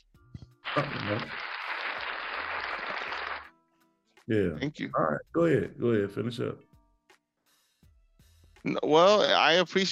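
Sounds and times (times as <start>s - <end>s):
audience hand claps: 0.6s - 3.5s
speech: 0.8s - 1.4s, 4.3s - 6.7s, 8.6s - 9.9s.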